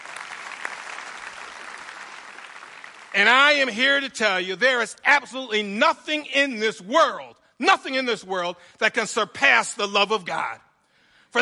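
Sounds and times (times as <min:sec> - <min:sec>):
audience clapping: 0:00.0 - 0:03.7
speech: 0:03.2 - 0:10.7.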